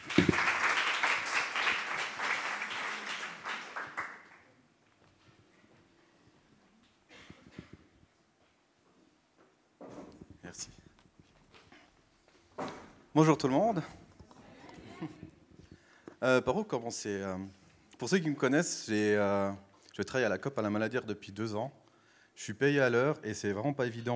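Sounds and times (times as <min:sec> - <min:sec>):
audience applause: 0:00.0 - 0:04.5
speech: 0:13.2 - 0:14.0, 0:16.2 - 0:21.8, 0:22.4 - 0:24.1.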